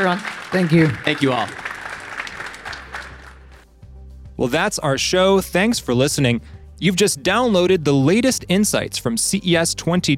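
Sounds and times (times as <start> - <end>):
speech: 0.0 - 1.6, 4.4 - 10.1
audience applause: 0.0 - 3.6.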